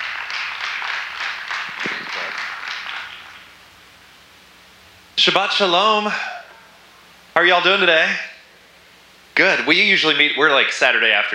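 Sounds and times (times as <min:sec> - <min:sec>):
crowd applauding: 0:00.0 - 0:03.6
speech: 0:05.2 - 0:06.3, 0:07.4 - 0:08.3, 0:09.4 - 0:11.3.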